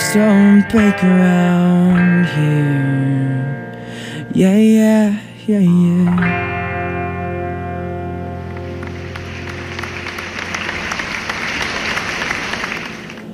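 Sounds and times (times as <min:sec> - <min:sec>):
speech: 0:00.1 - 0:03.7, 0:04.3 - 0:06.5
sustained musical chord: 0:06.4 - 0:13.1
studio audience applause: 0:08.4 - 0:13.3.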